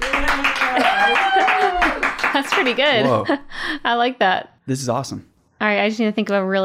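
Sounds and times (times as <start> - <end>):
canned applause from button: 0.0 - 3.2
crowd cheering: 0.0 - 3.2
speech: 2.6 - 6.6.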